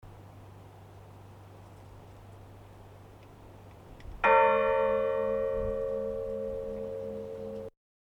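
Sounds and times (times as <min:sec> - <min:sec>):
bell ringing: 0:04.3 - 0:07.7.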